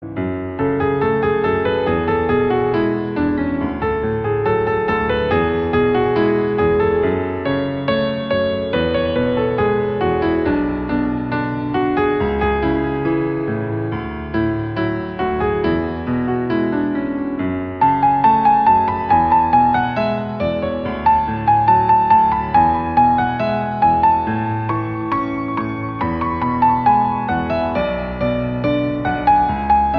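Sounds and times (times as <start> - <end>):
emotional piano: 0.0 - 29.9.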